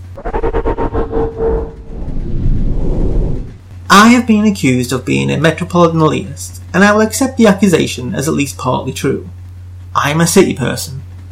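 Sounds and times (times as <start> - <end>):
sustained screeching tone: 0.0 - 3.6
loud heavy low rumble: 0.0 - 3.8
speech: 3.9 - 9.4, 10.0 - 11.0.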